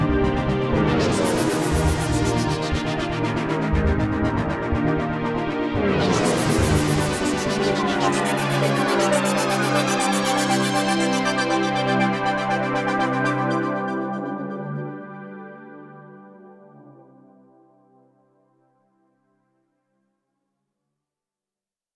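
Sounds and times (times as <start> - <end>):
Korg Radias-R synthesizer glide: 0.0 - 15.2.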